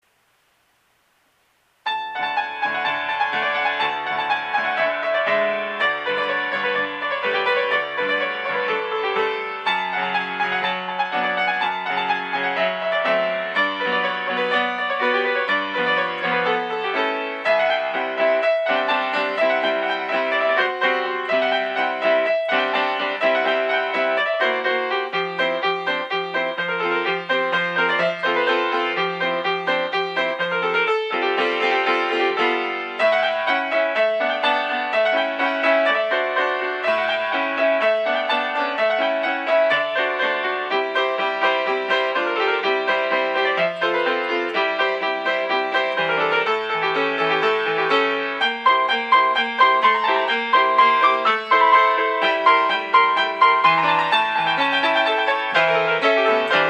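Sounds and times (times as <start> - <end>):
Rumanian folk piano piece: 1.8 - 56.6.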